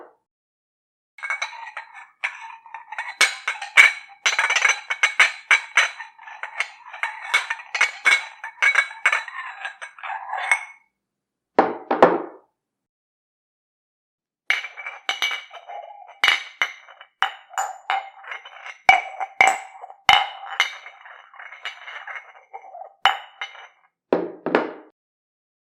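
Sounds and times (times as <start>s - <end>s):
glass cup and saucer: 1.2s - 10.8s, 14.5s - 24.8s.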